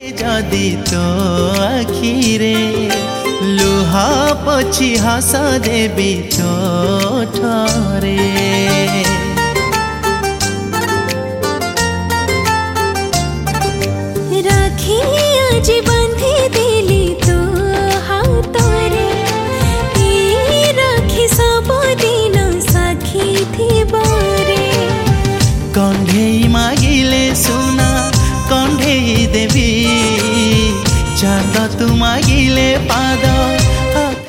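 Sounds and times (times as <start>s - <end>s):
Odia song: 0.0s - 34.2s.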